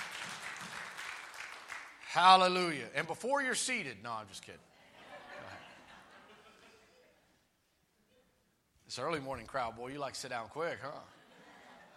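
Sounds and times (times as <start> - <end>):
audience hand clapping applause: 0.0 - 2.3
speech: 2.1 - 4.7, 9.0 - 11.2
laughter: 4.7 - 7.2, 11.1 - 11.9.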